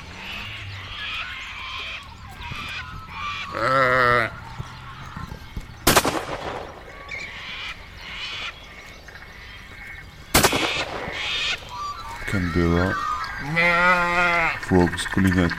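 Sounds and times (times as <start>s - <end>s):
birds calling and chattering: 0.0s - 15.5s
speech: 3.5s - 4.0s, 12.5s - 14.0s, 14.7s - 15.5s
rifle shots: 5.8s - 7.2s, 10.3s - 11.7s.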